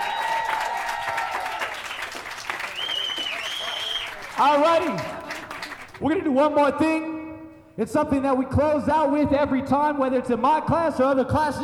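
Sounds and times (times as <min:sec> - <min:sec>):
whoops and high cheers: 0:00.0 - 0:04.2
crowd clapping: 0:00.0 - 0:06.1
speech: 0:04.4 - 0:05.2, 0:06.0 - 0:07.1, 0:07.8 - 0:11.6.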